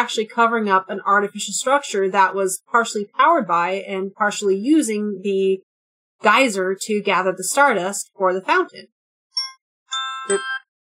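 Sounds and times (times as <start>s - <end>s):
speech: 0.1s - 9.0s, 10.3s - 10.5s
electronic alarm going off: 9.4s - 10.7s.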